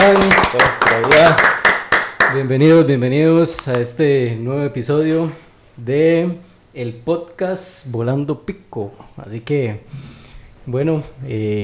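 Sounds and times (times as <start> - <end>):
speech: 0.0 - 1.6, 2.3 - 11.6
audience applause: 0.0 - 2.5.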